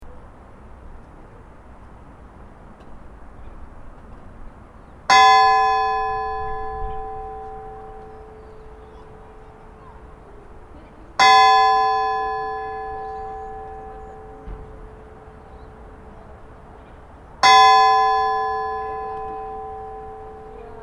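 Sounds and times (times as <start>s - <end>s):
church bells of Laugarneskirkja: 5.0s - 20.8s.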